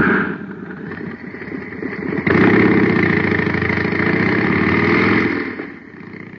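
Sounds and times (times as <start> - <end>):
jet cycle engine running on super fuel: 0.0 - 6.3.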